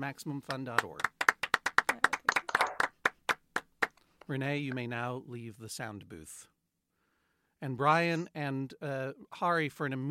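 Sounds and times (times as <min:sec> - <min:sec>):
speech: 0:00.0 - 0:01.2, 0:04.3 - 0:06.5, 0:07.6 - 0:10.0
round of applause: 0:00.5 - 0:04.0.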